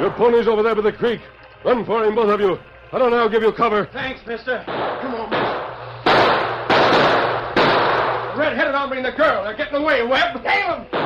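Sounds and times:
speech: 0.0s - 5.4s, 8.4s - 11.0s
gunshots in a shootout: 4.7s - 8.5s.

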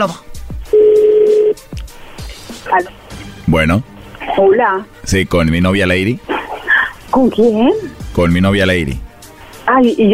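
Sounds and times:
speech: 0.0s - 0.3s, 2.7s - 6.3s, 7.2s - 9.0s, 9.6s - 10.1s
electronic tone of a phone number being dialed: 0.7s - 1.6s.

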